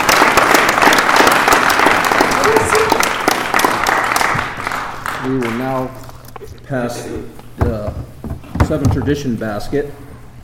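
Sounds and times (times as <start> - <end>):
audience applause: 0.0 - 5.8
speech: 5.3 - 10.0.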